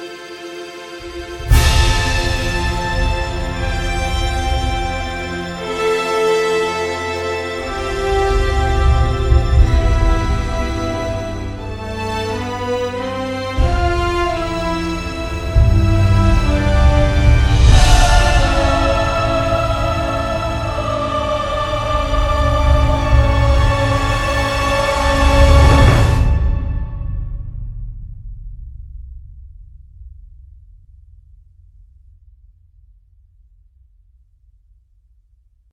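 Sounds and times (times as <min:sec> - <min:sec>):
orchestral cover: 0:00.0 - 0:27.5.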